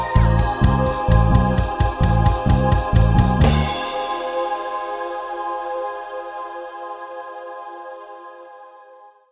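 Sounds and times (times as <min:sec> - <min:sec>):
MIDI ditty: 0:00.0 - 0:05.1.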